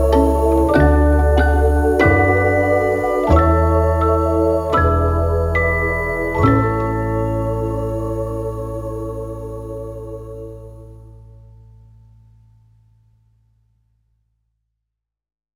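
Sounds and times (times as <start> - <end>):
instrumental nursery rhyme lullaby for sleep time: 0.0 - 10.9.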